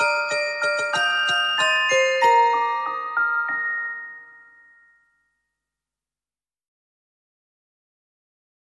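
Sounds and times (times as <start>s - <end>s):
carillon bells: 0.0s - 5.6s.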